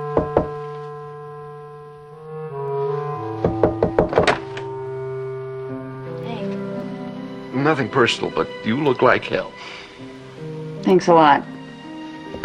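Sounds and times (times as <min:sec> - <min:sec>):
knocking on a door: 0:00.1 - 0:00.6, 0:03.4 - 0:04.5
speech: 0:07.6 - 0:09.8, 0:10.9 - 0:11.5.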